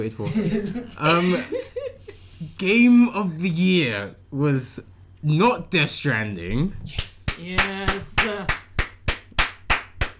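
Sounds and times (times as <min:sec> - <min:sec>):
speech: 0:00.0 - 0:01.7, 0:02.6 - 0:08.1
laughter: 0:00.2 - 0:02.3
hand clapping: 0:06.9 - 0:10.1.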